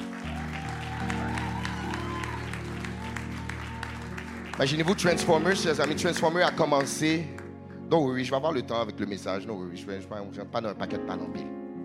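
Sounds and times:
audience clapping at an annual church conference: 0.0 - 7.5
speech: 4.6 - 11.5.

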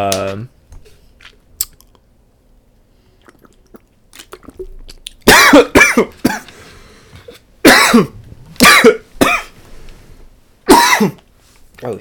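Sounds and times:
speech: 0.0 - 0.6, 5.6 - 6.1
person coughing from choking on water: 5.3 - 6.5, 7.6 - 9.6, 10.7 - 11.2.

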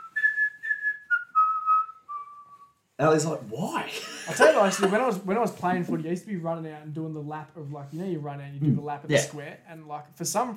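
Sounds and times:
person whistling the opening bars of a football song: 0.0 - 2.8
speech: 3.0 - 10.5
laughter: 3.9 - 5.3.

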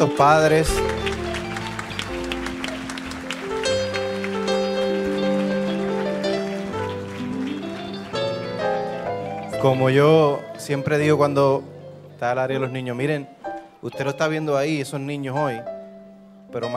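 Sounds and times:
speech: 0.0 - 1.0, 9.6 - 15.7, 16.5 - 16.7
audience applause: 0.0 - 10.0.

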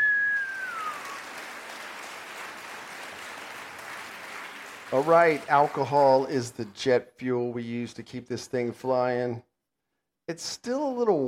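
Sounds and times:
crowd whistling: 0.0 - 4.8
crowd applause: 0.0 - 6.6
speech: 4.9 - 9.5, 10.3 - 11.2.

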